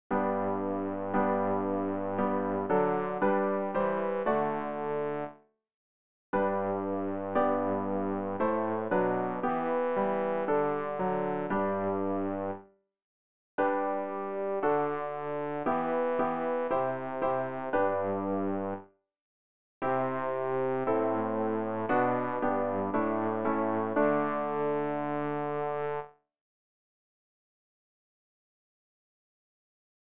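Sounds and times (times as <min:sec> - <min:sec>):
bass practice aid: 0:00.1 - 0:05.3, 0:06.4 - 0:12.6, 0:13.6 - 0:18.8, 0:19.8 - 0:26.0.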